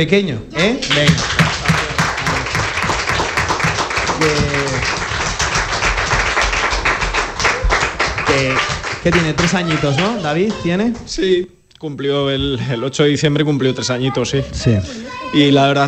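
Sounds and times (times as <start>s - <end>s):
speech: 0.0s - 1.8s, 4.2s - 5.0s, 8.4s - 15.8s
strong applause: 0.8s - 11.1s.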